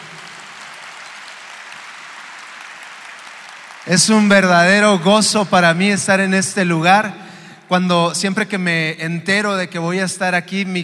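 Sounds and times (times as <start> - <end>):
church congregation applauding in praise to the Lord: 0.0 - 5.7
speech: 3.8 - 10.8.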